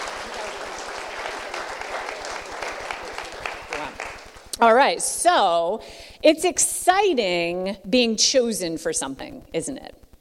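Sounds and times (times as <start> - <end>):
audience applause: 0.0 - 4.9
speech: 4.6 - 10.0.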